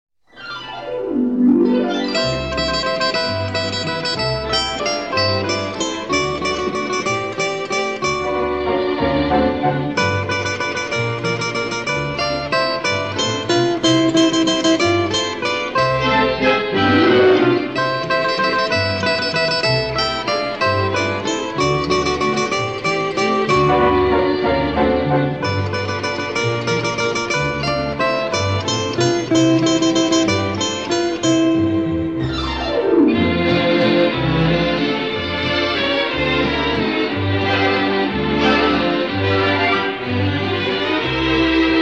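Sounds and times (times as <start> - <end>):
orchestra playing a waltz: 0.4 - 41.8.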